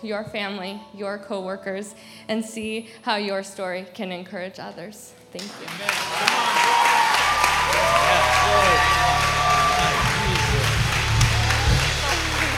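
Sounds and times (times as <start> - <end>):
speech: 0.0 - 6.6
audience applause: 5.4 - 12.5.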